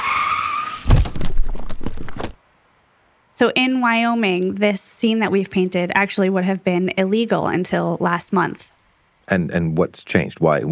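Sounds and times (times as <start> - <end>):
car tires screeching in a skid: 0.0 - 0.9
car hitting a deer, heavy thud and crunching impact: 0.8 - 2.4
speech: 3.4 - 8.7, 9.3 - 10.7.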